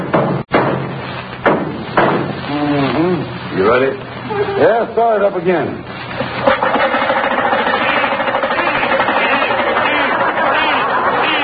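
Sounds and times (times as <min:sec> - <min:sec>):
hammer banging on a car engine: 0:00.0 - 0:02.4, 0:06.2 - 0:11.4
speech: 0:03.7 - 0:06.2.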